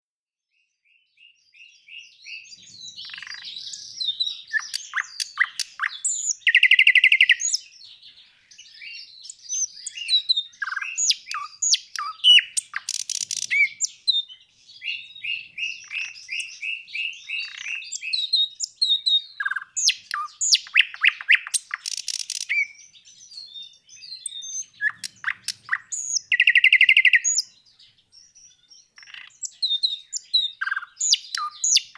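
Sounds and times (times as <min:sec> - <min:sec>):
nightingale Luscinia singing: 0:00.9 - 0:31.9.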